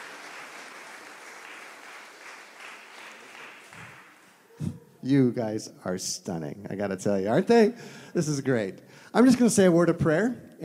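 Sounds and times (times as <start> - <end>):
crowd clapping: 0.0 - 4.4
speech: 4.6 - 10.6.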